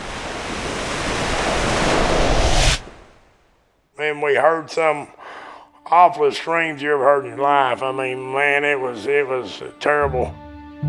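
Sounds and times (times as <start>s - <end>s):
big ocean wave crashing against a pier: 0.0s - 3.6s
speech: 4.1s - 5.2s, 5.9s - 10.8s.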